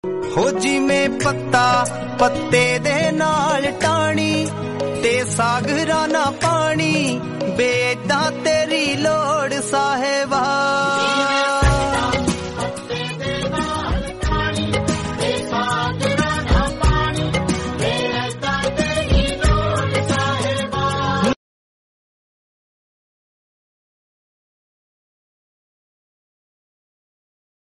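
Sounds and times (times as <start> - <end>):
Punjabi religious shabad singing: 0.4 - 21.4.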